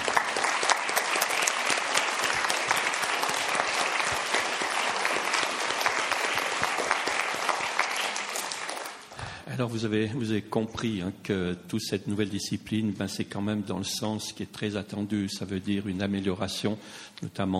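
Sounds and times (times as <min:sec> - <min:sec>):
audience applause: 0:00.0 - 0:09.2
speech: 0:09.6 - 0:17.5.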